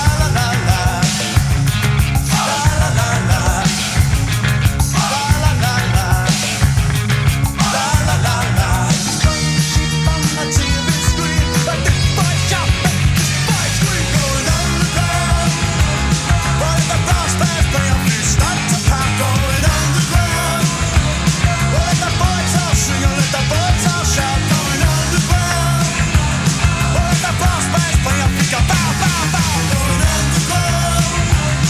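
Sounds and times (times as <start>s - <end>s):
rock song playing on the radio: 0.0s - 31.6s.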